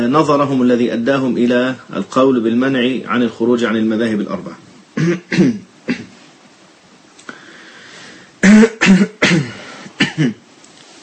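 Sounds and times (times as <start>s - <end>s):
speech: 0.1s - 6.1s, 10.2s - 10.4s
man coughing and clearing his throat during a religious lecture: 5.0s - 6.2s, 8.4s - 10.4s.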